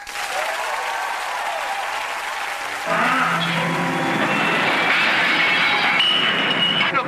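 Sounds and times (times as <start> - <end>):
audience applause welcoming a country-rock singer: 0.0 - 6.9.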